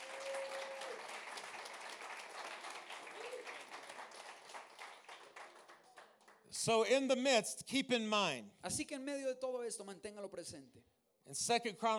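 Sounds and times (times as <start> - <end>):
audience applause: 0.0 - 6.4
speech: 6.6 - 11.9.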